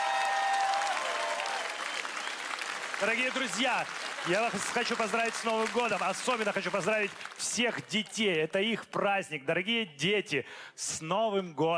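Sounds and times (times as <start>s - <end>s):
audience applause after a musical number at a New Year show: 0.0s - 8.3s
speech: 3.0s - 11.7s.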